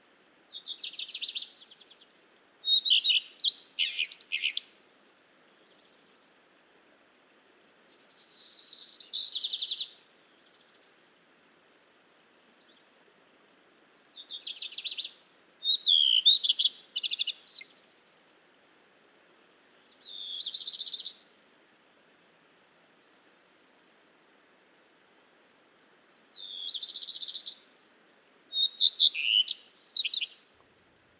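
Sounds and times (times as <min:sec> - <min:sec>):
faint low hiss: 0:00.0 - 0:31.1
Phoenicurus phoenicurus song: 0:00.5 - 0:05.0, 0:08.1 - 0:11.0, 0:14.2 - 0:18.0, 0:19.9 - 0:21.3, 0:26.3 - 0:27.8, 0:28.5 - 0:30.5.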